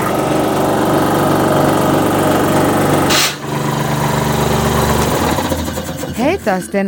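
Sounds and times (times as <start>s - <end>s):
air hissing: 0.0s - 3.8s
compressed air tool running: 0.0s - 6.8s
speech: 6.4s - 6.8s.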